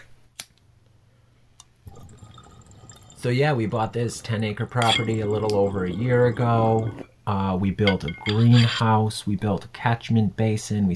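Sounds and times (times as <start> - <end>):
bong water bubbling during a hit: 1.9 - 7.1
speech: 3.2 - 10.9.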